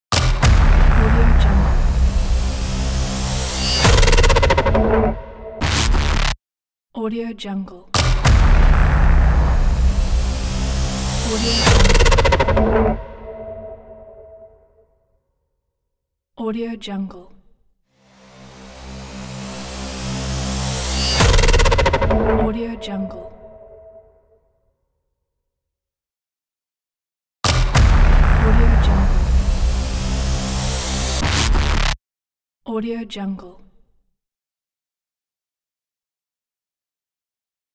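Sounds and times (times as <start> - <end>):
glitchy logo sound: 0.2 - 6.4, 8.0 - 14.5, 18.4 - 23.9, 27.5 - 32.0.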